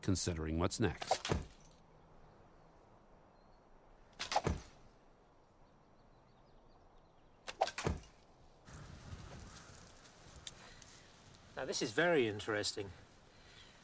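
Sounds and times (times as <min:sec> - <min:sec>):
speech: 0:00.0 - 0:01.5, 0:11.7 - 0:13.0
arrows from mounted archers striking a plastered dummy target: 0:01.0 - 0:01.6, 0:04.2 - 0:04.8, 0:07.5 - 0:08.2.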